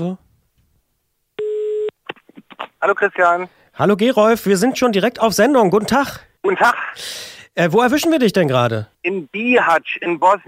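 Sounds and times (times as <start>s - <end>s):
speech: 0.0s - 0.2s, 2.8s - 10.4s
telephone ringing tone on a call: 1.4s - 1.9s.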